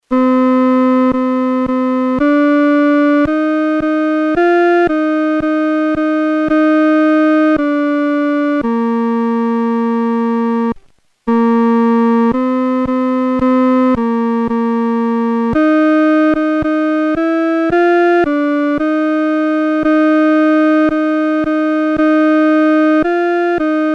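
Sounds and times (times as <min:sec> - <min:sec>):
solo instrumental piece: 0:00.0 - 0:23.9.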